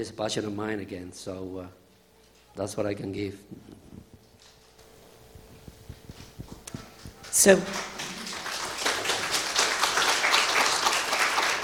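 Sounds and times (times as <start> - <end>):
speech: 0.0 - 1.8, 2.6 - 3.9, 7.4 - 7.9
audience applause: 6.7 - 11.6.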